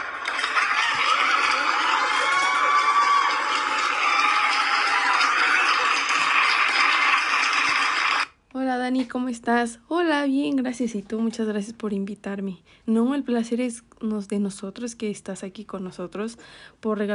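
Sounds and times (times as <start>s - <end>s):
applause: 0.0s - 8.3s
crowd cheering: 0.0s - 8.3s
speech: 8.9s - 17.1s.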